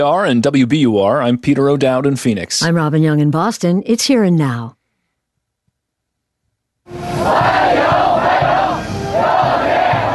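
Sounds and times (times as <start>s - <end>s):
speech: 0.0s - 4.8s
crowd of teenagers chanting a welcome in unison: 7.1s - 10.1s.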